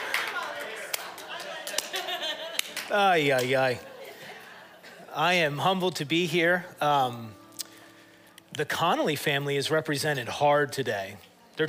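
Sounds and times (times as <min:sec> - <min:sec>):
person clapping in the audience: 0:00.0 - 0:03.6
laughter: 0:00.0 - 0:05.2
speech: 0:02.9 - 0:03.9, 0:05.2 - 0:07.4, 0:08.6 - 0:11.6.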